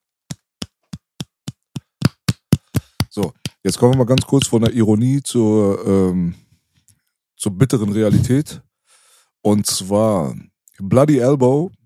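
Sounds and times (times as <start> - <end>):
one person clapping: 0.3 - 4.8
speech: 3.2 - 6.4, 7.4 - 8.7, 9.4 - 11.8.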